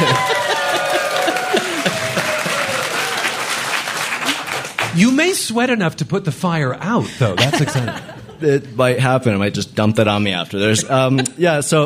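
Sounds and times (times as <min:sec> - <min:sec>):
audience applause: 0:00.0 - 0:05.3
speech: 0:05.0 - 0:11.8.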